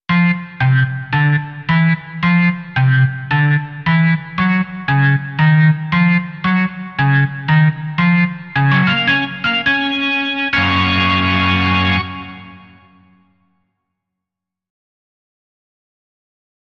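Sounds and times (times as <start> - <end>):
organ music: 0.1 - 13.2.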